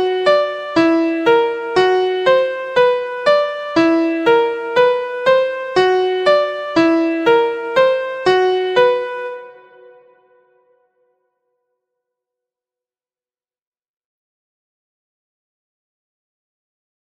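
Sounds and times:
trichord in second inversion in the key of Bb: 0.0 - 10.2.

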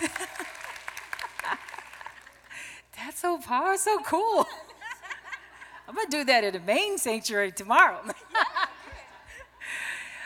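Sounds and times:
audience clapping: 0.0 - 2.7
speech: 3.2 - 4.6, 6.0 - 8.2.

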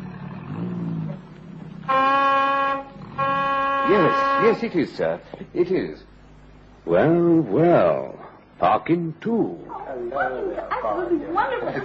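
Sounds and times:
car horn honks: 1.9 - 4.8
speech: 3.9 - 6.2, 6.8 - 11.8.

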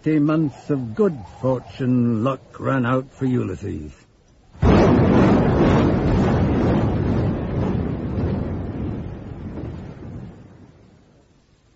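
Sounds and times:
speech: 0.0 - 4.0
250-kilo bombs falling and exploding: 4.5 - 11.7.

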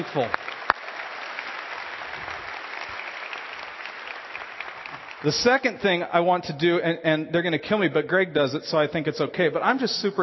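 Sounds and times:
speech: 0.0 - 0.4, 5.2 - 10.2
audience applause: 0.0 - 5.8.

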